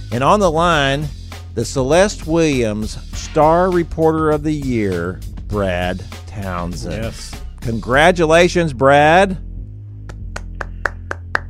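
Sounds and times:
speech: 0.1s - 9.5s
studio clapping: 10.0s - 11.4s.

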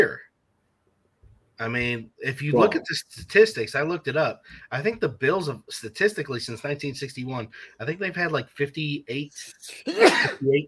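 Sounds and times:
speech: 1.6s - 10.6s
person sneezing: 9.7s - 10.4s.

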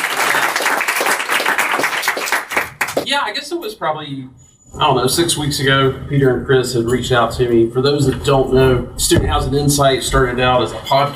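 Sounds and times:
audience round of applause: 0.0s - 3.1s
speech: 3.1s - 11.1s.

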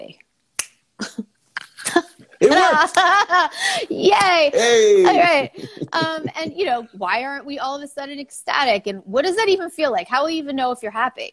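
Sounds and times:
speech: 0.1s - 0.3s, 2.7s - 11.3s
finger snap: 0.6s - 0.8s
laughter: 2.2s - 6.7s.

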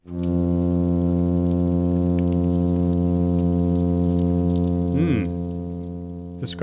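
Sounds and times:
plainfin midshipman fish hum: 0.0s - 6.6s.

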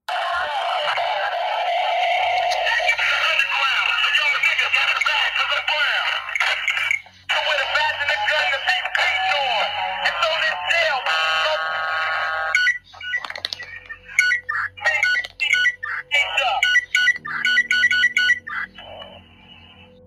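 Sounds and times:
jamming song: 1.1s - 20.0s
police radio button beeps: 12.6s - 19.1s.

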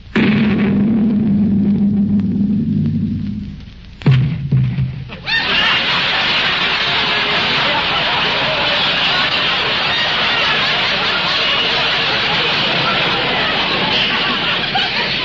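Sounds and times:
cannon shot fired across a ship's bow: 0.1s - 5.2s
laughter: 5.1s - 15.2s.

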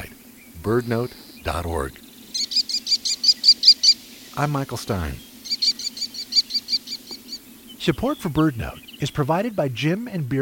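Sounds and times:
speech: 0.6s - 2.0s, 4.4s - 5.3s, 7.8s - 10.4s
American Kestrel calling shrill notes: 2.2s - 4.4s, 5.2s - 9.2s.

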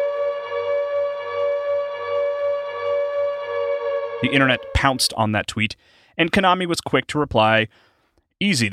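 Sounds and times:
eerie horror video game siren: 0.0s - 5.3s
speech: 4.2s - 8.7s.

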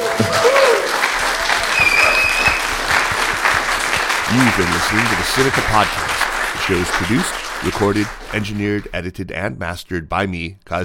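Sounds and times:
audience applause: 0.0s - 9.0s
whistles: 0.6s - 3.1s
speech: 4.4s - 6.1s, 6.7s - 10.8s.

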